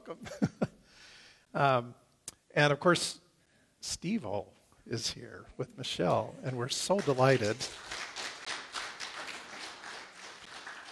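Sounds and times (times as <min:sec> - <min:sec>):
speech: 0:00.1 - 0:00.6, 0:01.5 - 0:02.0, 0:02.6 - 0:03.2, 0:03.8 - 0:07.9
audience applauding: 0:06.5 - 0:10.8.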